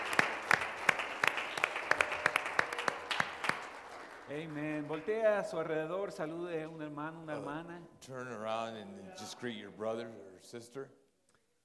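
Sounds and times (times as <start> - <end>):
audience applause: 0.0 - 5.4
speech: 4.3 - 11.0.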